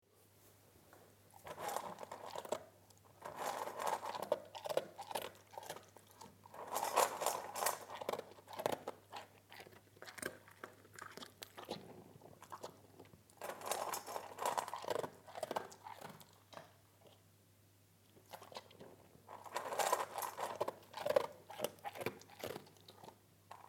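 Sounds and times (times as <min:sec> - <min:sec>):
dog eating: 0:01.4 - 0:17.2, 0:18.2 - 0:23.6.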